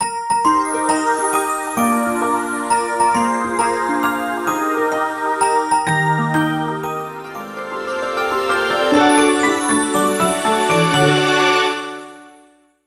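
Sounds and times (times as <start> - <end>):
birthday jingle: 0.0 - 12.6.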